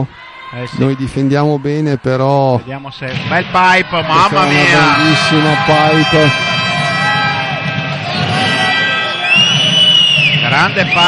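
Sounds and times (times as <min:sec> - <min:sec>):
speech: 0:00.0 - 0:06.6, 0:10.6 - 0:11.0
volleyball crowd murmuring and cheering after a point: 0:00.0 - 0:11.0.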